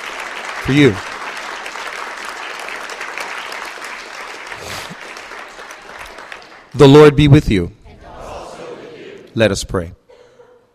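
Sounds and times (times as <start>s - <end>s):
round of applause: 0.0s - 7.2s
speech: 0.6s - 1.1s, 6.8s - 7.8s, 9.4s - 10.0s.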